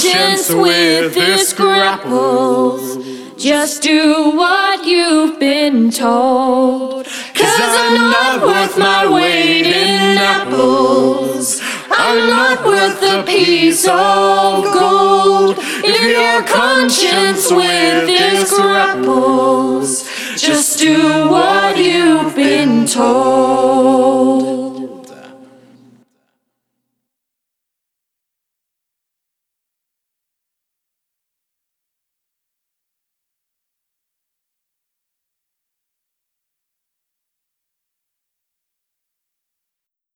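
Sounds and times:
vocals: 0.0 - 26.3.

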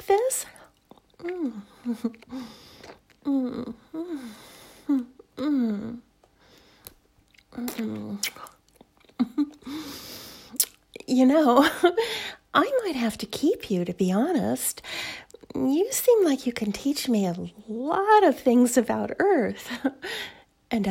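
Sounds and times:
creature chewing and biting on a human: 0.6 - 3.3, 6.8 - 9.2
speech: 1.2 - 2.6, 11.2 - 20.8.

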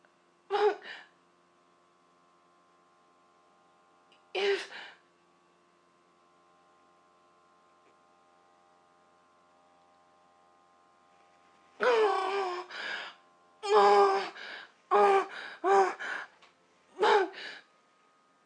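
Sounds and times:
person moaning: 0.5 - 1.1, 4.4 - 5.0, 11.8 - 16.4, 17.0 - 17.6.

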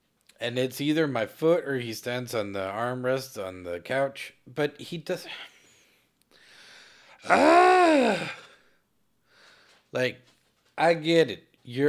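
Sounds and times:
speech: 0.4 - 5.5, 7.2 - 8.4, 9.9 - 11.8
person imitating a whiny hungry dog whine: 7.2 - 8.4.

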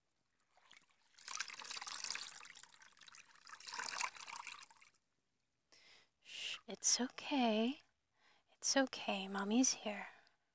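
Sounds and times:
running water poured for washing someone: 0.4 - 5.0
speech: 6.7 - 7.8, 8.6 - 10.2.

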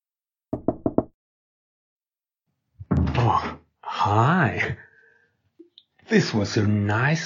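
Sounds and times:
knocking on a wooden door: 0.5 - 1.2
speech: 3.3 - 4.8, 6.1 - 7.2.

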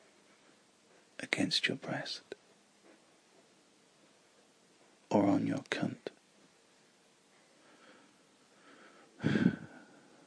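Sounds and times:
speech: 1.4 - 2.4, 5.1 - 6.1
heavy urgent breathing: 7.4 - 10.2.

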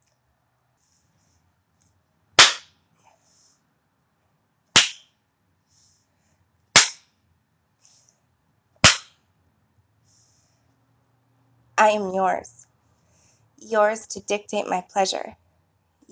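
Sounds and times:
hand spanking slaps: 2.4 - 2.7, 4.8 - 5.1, 6.8 - 7.0, 8.8 - 9.1
speech: 11.8 - 12.7, 13.6 - 15.4.

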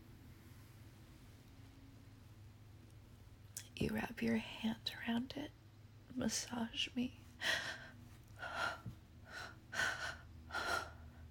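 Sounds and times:
speech: 3.8 - 7.8
heavy breathing: 7.4 - 11.2.

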